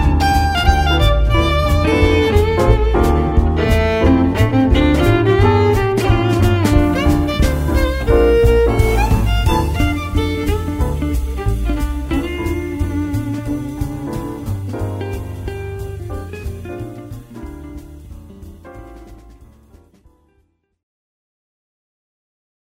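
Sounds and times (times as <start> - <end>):
solo violin: 0.0 - 18.1.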